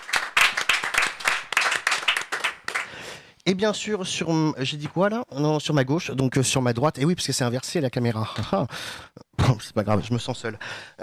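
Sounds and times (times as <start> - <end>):
audience applause: 0.0 - 3.0
speech: 3.5 - 11.0.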